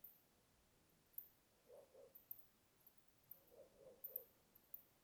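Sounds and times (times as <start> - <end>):
dogs in a small town at night: 1.7 - 2.2, 3.5 - 4.3.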